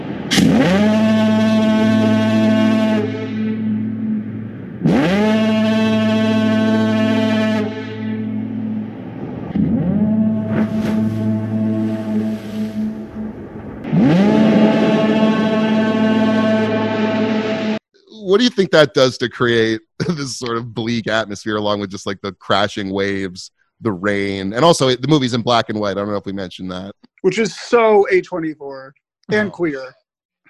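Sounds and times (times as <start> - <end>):
deep foghorn blasts: 0.3 - 23.4
speech: 0.4 - 1.1, 18.4 - 30.0
laughter: 18.2 - 28.6, 29.3 - 29.9.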